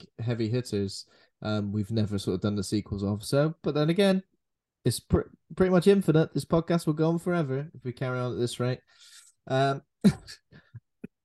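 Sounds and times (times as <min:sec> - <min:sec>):
speech: 0:00.2 - 0:10.6
person coughing: 0:10.1 - 0:10.8.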